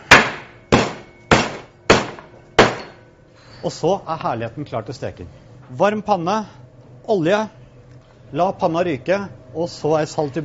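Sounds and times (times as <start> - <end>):
meat being pounded with a kitchen utensil: 0.0 - 3.0
speech: 3.6 - 7.6, 8.3 - 10.4.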